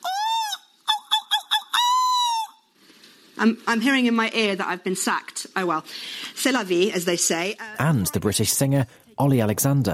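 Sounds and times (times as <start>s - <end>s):
human voice imitating a seagull's call: 0.0s - 2.6s
speech: 3.4s - 9.9s.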